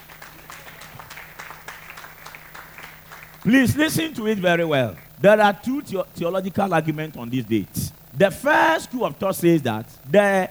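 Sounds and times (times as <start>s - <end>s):
audience applause: 0.0s - 4.0s
speech: 3.4s - 10.4s.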